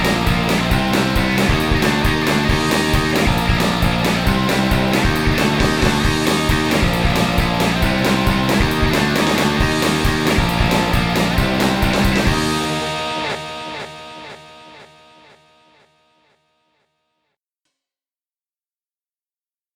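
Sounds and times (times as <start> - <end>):
swing music: 0.0 - 13.6.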